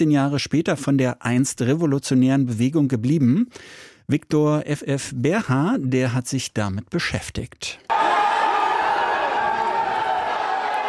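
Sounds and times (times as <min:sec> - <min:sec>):
speech: 0:00.0 - 0:08.0
crowd cheering outside a courthouse: 0:07.9 - 0:10.8.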